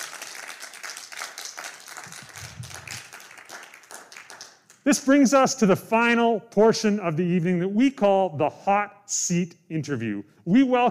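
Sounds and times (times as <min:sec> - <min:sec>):
crowd applause: 0:00.0 - 0:04.6
speech: 0:04.8 - 0:10.8.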